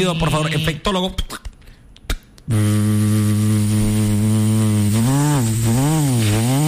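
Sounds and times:
speech: 0:00.0 - 0:01.4, 0:02.5 - 0:03.1
electric hair clipper buzzing: 0:02.5 - 0:06.6.

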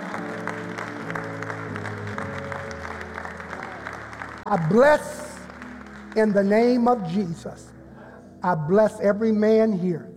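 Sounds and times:
audience clapping hands: 0:00.0 - 0:07.3
speech: 0:04.5 - 0:05.2, 0:06.2 - 0:07.7, 0:08.4 - 0:10.1.

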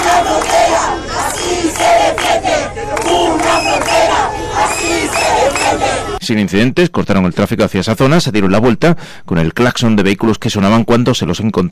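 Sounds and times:
protest crowd chanting at border sit-in: 0:00.0 - 0:06.2
speech: 0:06.3 - 0:11.6.

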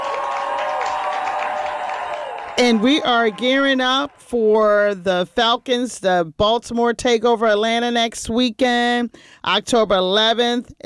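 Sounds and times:
crowd applause and cheering for the Baltimore Ravens: 0:00.0 - 0:05.1
speech: 0:02.6 - 0:10.8.

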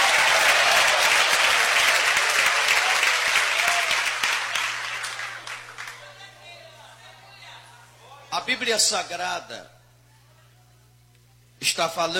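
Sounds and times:
church audience applause: 0:00.0 - 0:06.3
speech: 0:08.5 - 0:09.8, 0:11.6 - 0:12.1.

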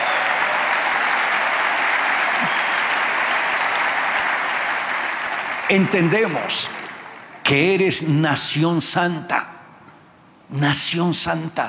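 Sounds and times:
audience applauding: 0:00.0 - 0:07.6
speech: 0:05.7 - 0:06.8, 0:07.5 - 0:09.5, 0:10.5 - 0:11.6.

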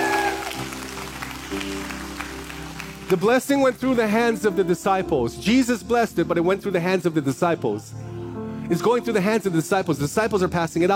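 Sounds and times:
church congregation applauding: 0:00.0 - 0:03.8
sustained low musical tones: 0:00.0 - 0:10.9
speech: 0:03.1 - 0:08.1, 0:08.7 - 0:10.9.

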